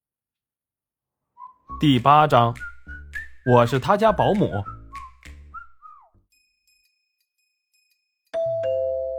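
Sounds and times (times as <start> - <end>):
speech: 1.8 - 2.7, 3.4 - 4.8
whistle-like chirps: 2.4 - 3.8, 4.4 - 6.2
doorbell two-note chime: 8.4 - 9.1.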